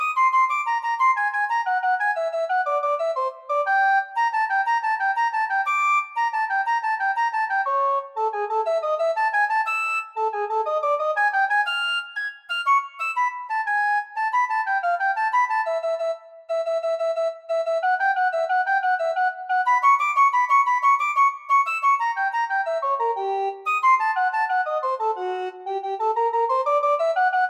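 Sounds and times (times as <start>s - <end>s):
recorder playing: 0.0s - 27.4s.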